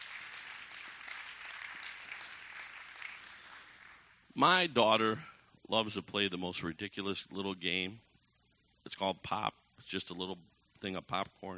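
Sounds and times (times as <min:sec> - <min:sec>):
audience clapping: 0:00.0 - 0:04.2
speech: 0:04.4 - 0:08.1, 0:08.8 - 0:11.5.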